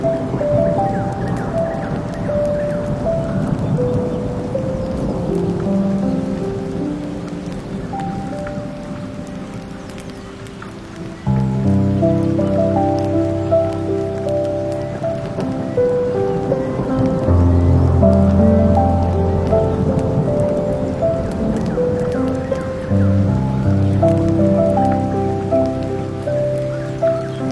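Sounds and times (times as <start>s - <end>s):
campfire: 0.0s - 27.5s
forest ambience: 0.0s - 27.5s
rain: 0.0s - 27.5s
sea: 0.0s - 27.5s
water: 0.0s - 27.5s
wind: 0.0s - 27.5s.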